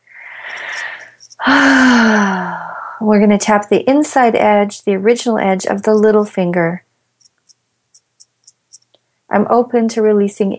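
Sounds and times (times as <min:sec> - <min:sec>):
big deep inhale: 0:00.1 - 0:03.0
speech: 0:01.5 - 0:02.4, 0:03.0 - 0:06.9, 0:09.3 - 0:10.5.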